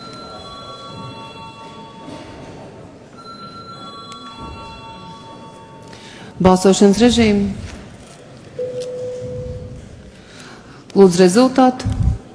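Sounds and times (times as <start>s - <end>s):
parliament chamber electronic bell calling vote: 0.0s - 2.3s, 3.1s - 6.2s
low murmur of room noise and shuffling: 0.0s - 12.3s
speech: 6.4s - 7.7s, 11.0s - 12.0s.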